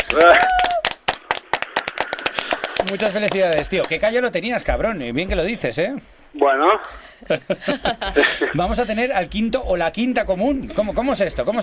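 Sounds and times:
radio studio team clapping: 0.0 - 4.4
speech: 0.1 - 0.5, 2.9 - 11.6.

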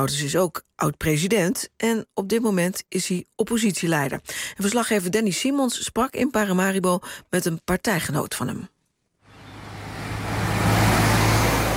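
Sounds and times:
speech: 0.0 - 8.7
cars speeding past on Independence Square in Paramaribo Suriname: 9.3 - 11.7.

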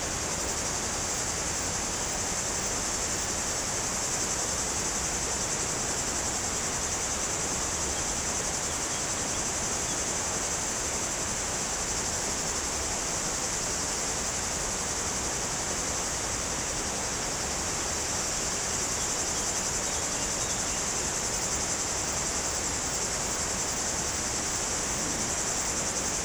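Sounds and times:
cicadas buzzing in trees on a hot day: 0.0 - 26.2.

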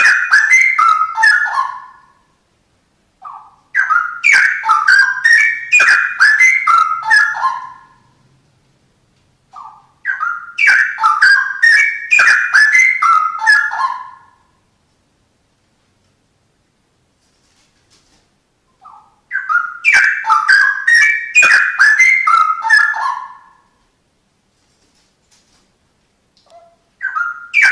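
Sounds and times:
Oriental magpie-robin song: 0.0 - 2.2, 3.2 - 8.3, 9.5 - 14.5, 18.7 - 23.7, 26.4 - 27.6.

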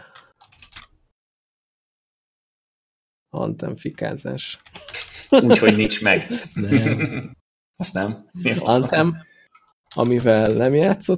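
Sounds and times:
typing on a computer keyboard: 0.1 - 0.9, 9.5 - 11.1
speech: 3.3 - 9.3, 9.9 - 11.1
laughter: 4.8 - 7.4.

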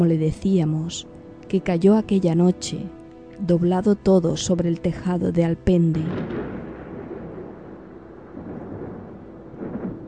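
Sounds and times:
speech: 0.0 - 6.4
rolling thunder: 6.0 - 10.0.

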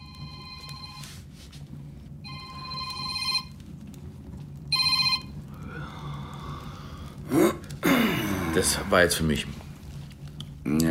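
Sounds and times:
telephone ringing: 0.0 - 1.2, 2.2 - 3.6, 4.7 - 5.4
breathy noise: 5.5 - 9.3
speech: 8.6 - 9.6.

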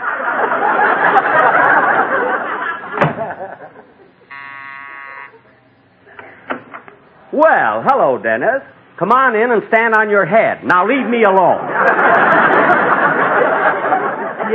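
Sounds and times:
laughter: 0.0 - 4.4, 11.0 - 14.5
doorbell ringing: 4.3 - 5.4
speech: 7.4 - 12.7.

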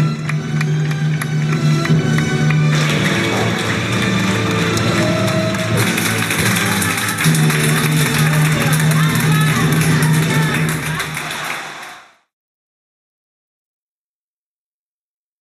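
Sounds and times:
audience applause: 0.0 - 12.3.

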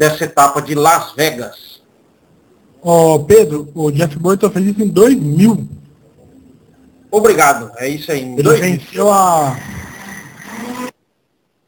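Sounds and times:
speech: 0.0 - 1.8, 2.8 - 5.8, 7.1 - 9.8
blender whirring: 9.4 - 11.0.

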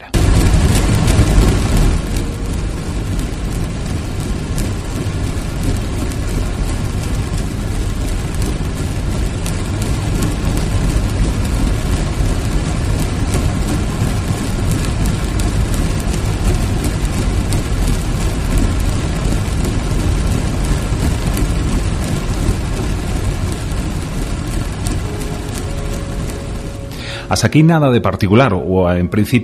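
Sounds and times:
ship propeller recorded underwater: 0.0 - 27.3
speech: 27.4 - 29.4.

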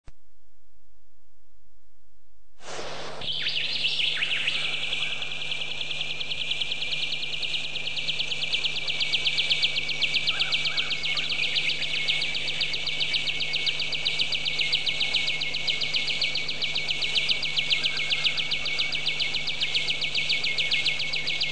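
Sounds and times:
bird song with high whistles and sharp down-slurred chirps: 3.2 - 21.5.

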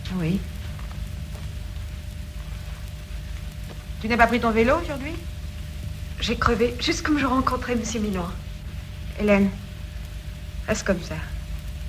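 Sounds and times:
heavy rain pouring down: 0.0 - 11.8
speech: 0.1 - 0.6, 4.0 - 5.4, 6.2 - 8.5, 9.2 - 9.6, 10.7 - 11.3.

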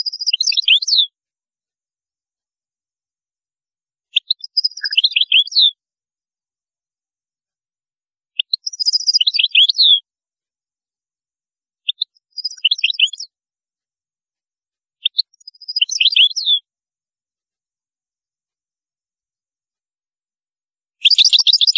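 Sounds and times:
European goldfinch song: 0.0 - 1.2, 4.1 - 5.8, 8.4 - 10.0, 11.9 - 13.3, 15.0 - 16.7, 21.0 - 21.7.

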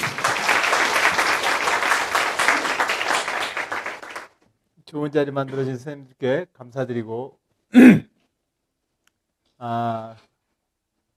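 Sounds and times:
audience applause: 0.0 - 4.4
speech: 4.9 - 8.1, 9.6 - 10.3.

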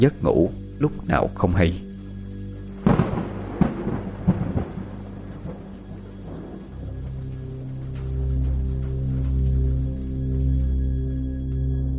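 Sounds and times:
speech: 0.0 - 1.9
steady wash of rain: 2.6 - 11.8
thunderstorm thunder cracks and low rumble: 2.8 - 10.6.

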